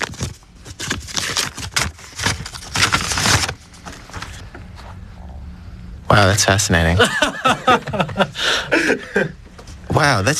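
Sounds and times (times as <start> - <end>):
envelope paper tearing and rustling as it is opened: 0.0 - 4.4
speech: 6.2 - 9.4, 10.0 - 10.3
laughter: 6.8 - 9.4.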